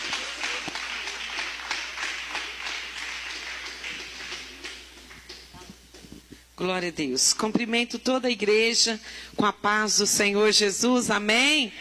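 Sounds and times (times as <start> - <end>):
audience applause: 0.0 - 5.5
speech: 6.6 - 11.8.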